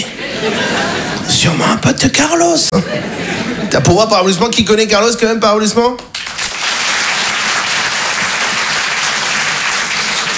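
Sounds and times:
laughter: 0.0s - 1.4s, 2.7s - 3.8s
speech: 0.0s - 6.2s
audience applause: 6.1s - 10.3s.

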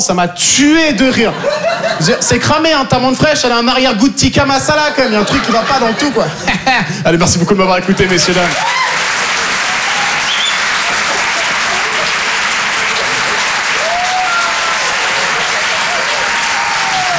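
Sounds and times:
speech: 0.0s - 9.0s
laughter: 1.0s - 2.8s, 4.6s - 17.1s
audience applause at a comedy club after a stand-up set: 5.0s - 6.3s, 7.8s - 17.1s.

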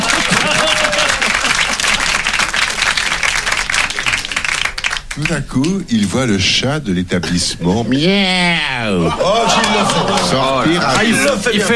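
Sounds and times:
laughter: 0.0s - 2.8s, 7.6s - 11.7s
audience applause: 0.0s - 5.8s, 9.2s - 11.7s
speech: 5.2s - 11.7s.

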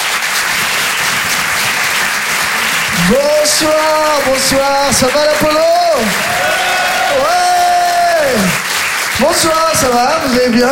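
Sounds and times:
live comedy audience applauding at the Grand Point Virgule: 0.0s - 10.7s
speech: 3.1s - 7.5s, 8.2s - 8.6s, 9.2s - 10.7s.

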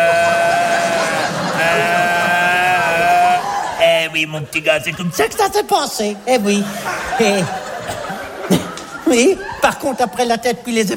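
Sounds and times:
voice imitating a bellowing stag: 0.0s - 3.5s
laughter: 0.0s - 10.6s
speech: 4.1s - 7.6s, 9.1s - 10.9s.

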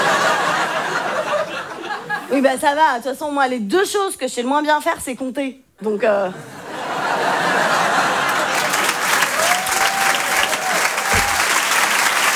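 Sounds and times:
laughter: 0.0s - 2.3s, 6.3s - 12.3s
speech: 2.3s - 6.6s
audience applause at the Rire et Chanson Comedy Club in Paris: 7.7s - 12.3s.

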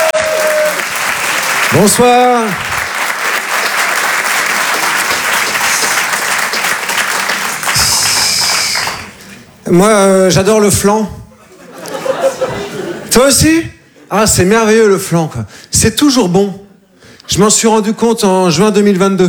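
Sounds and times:
audience applause: 0.0s - 9.2s
speech: 1.7s - 2.7s, 9.7s - 11.2s, 13.2s - 16.6s, 17.3s - 19.2s
laughter: 11.3s - 13.1s.

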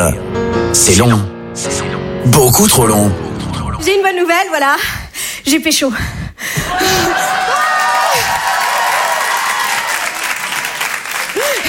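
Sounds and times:
speech: 0.0s - 6.2s
audience applause: 6.7s - 11.6s.

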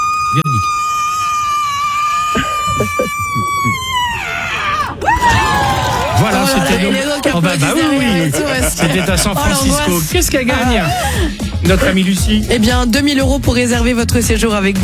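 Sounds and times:
crowd murmuring and cheering: 0.0s - 0.7s, 2.2s - 14.8s
piercing high-pitched scream: 0.0s - 6.9s
laughter: 0.4s - 0.7s, 1.6s - 12.6s
speech: 7.4s - 14.8s.

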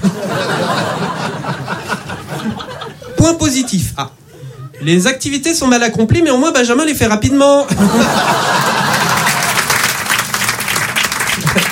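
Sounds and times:
laughter: 0.0s - 3.2s, 7.7s - 9.9s, 11.3s - 11.7s
speech: 3.4s - 4.2s, 4.8s - 8.7s
audience applause: 8.1s - 11.7s.

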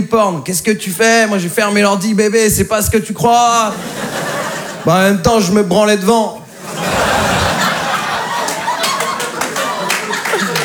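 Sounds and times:
speech: 0.0s - 6.4s
audience laughing: 3.6s - 5.2s, 6.5s - 10.6s
audience applauding: 6.8s - 10.6s.

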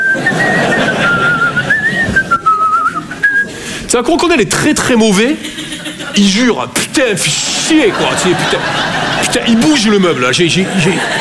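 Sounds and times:
laughter: 0.0s - 3.6s, 4.2s - 11.1s
person whistling a tune: 0.0s - 3.6s
speech: 3.9s - 5.6s, 6.2s - 11.1s.

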